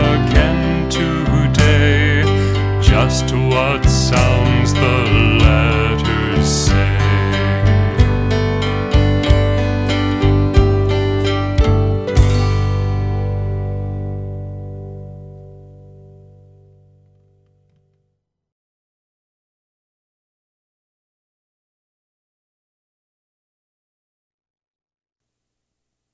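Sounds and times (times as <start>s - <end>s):
nursery rhyme melody: 0.0s - 15.3s.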